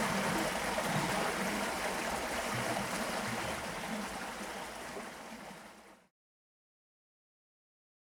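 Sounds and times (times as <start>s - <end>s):
waterfall sliding: 0.0s - 6.1s.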